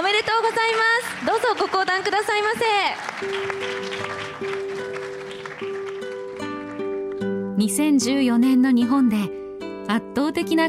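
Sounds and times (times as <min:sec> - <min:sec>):
speech: 0:00.0 - 0:04.5, 0:07.6 - 0:10.6
audience applause: 0:00.0 - 0:06.8.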